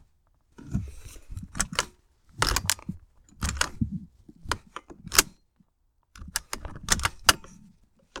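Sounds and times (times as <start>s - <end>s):
seatbelt clicking: 0.7s - 5.3s, 6.2s - 7.4s.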